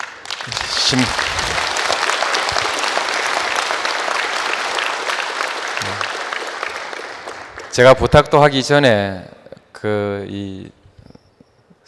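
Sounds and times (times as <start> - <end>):
audience applause: 0.0 - 8.1
speech: 0.4 - 1.3, 7.8 - 10.8.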